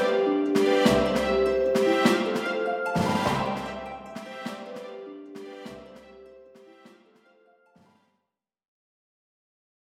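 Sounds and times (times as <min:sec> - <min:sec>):
victory jingle: 0:00.0 - 0:06.2.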